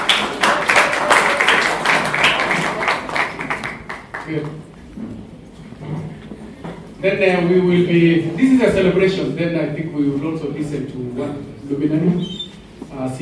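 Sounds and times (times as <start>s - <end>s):
audience clapping for a speaker: 0.0s - 4.8s
speech: 7.0s - 13.2s.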